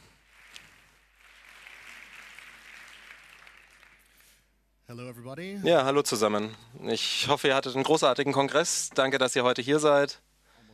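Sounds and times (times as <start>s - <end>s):
audience applause: 0.0s - 4.4s
speech: 4.9s - 10.2s.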